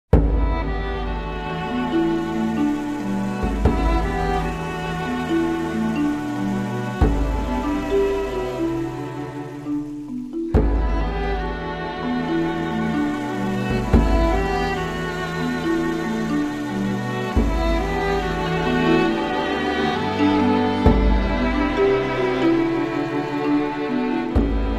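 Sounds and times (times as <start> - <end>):
string quartet: 0.1 - 24.7.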